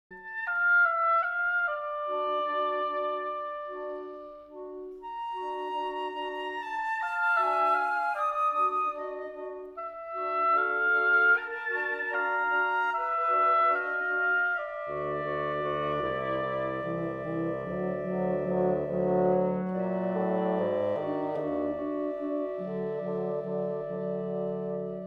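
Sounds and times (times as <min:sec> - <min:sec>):
winter andante music: 0:00.1 - 0:25.0.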